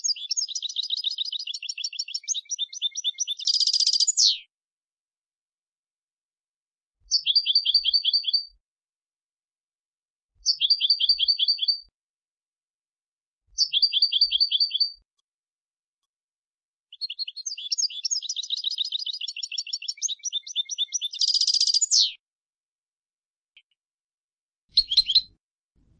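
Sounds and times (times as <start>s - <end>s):
European goldfinch Carduelis carduelis singing with twittering bursts and trills: 0.0s - 4.4s, 7.1s - 8.5s, 10.4s - 11.9s, 13.6s - 15.0s, 16.9s - 22.2s, 24.7s - 25.4s.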